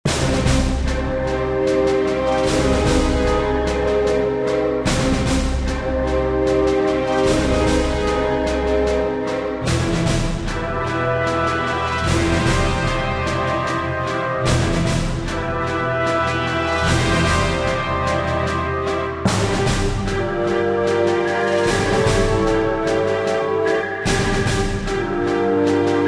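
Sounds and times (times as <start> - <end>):
battle music: 0.1 - 26.0.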